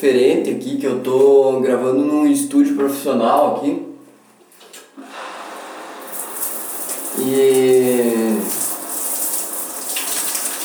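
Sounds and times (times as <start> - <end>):
speech: 0.0 - 3.8
shower water spraying: 5.5 - 10.6.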